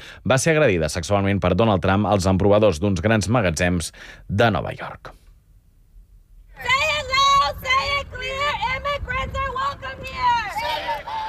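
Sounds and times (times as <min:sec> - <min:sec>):
speech: 0:00.1 - 0:05.2
low traffic rumble: 0:05.5 - 0:11.2
crowd shouting and chanting at an improvised street protest in Houston: 0:06.6 - 0:11.2.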